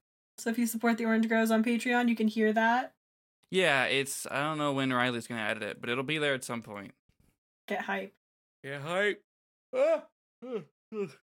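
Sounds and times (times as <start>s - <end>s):
speech: 0.4s - 7.0s, 7.7s - 11.2s
person yawning: 9.8s - 11.2s.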